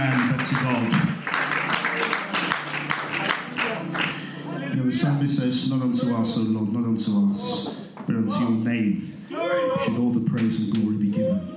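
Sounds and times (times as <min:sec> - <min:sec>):
audience clapping loudly: 0:00.0 - 0:04.5
speech: 0:04.9 - 0:11.5.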